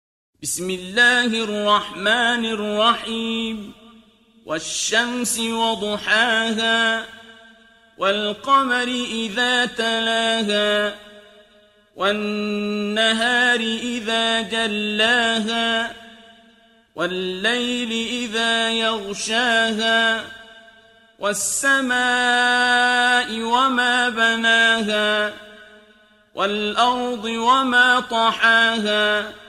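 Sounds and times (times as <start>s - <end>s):
Quran recitation in tartil style: 0.4s - 29.4s.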